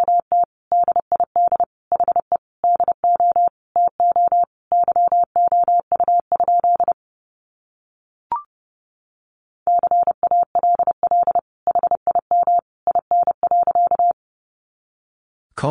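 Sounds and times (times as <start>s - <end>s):
Morse code beeps at 30wpm: 0.0s - 7.0s, 9.7s - 14.2s.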